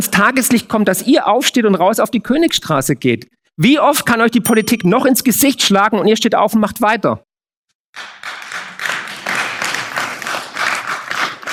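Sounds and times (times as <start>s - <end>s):
speech: 0.0s - 7.3s, 8.0s - 8.2s
crowd clapping: 8.0s - 11.5s.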